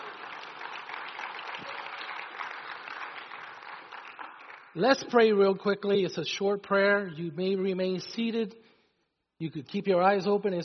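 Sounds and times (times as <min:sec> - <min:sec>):
audience clapping: 0:00.0 - 0:05.4
speech: 0:04.8 - 0:08.7, 0:09.4 - 0:10.6.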